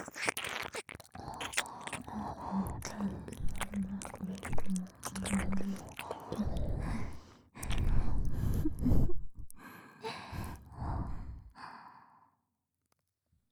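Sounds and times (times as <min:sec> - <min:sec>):
ear licking: 0:00.0 - 0:09.6
double nose breathing: 0:01.2 - 0:11.5.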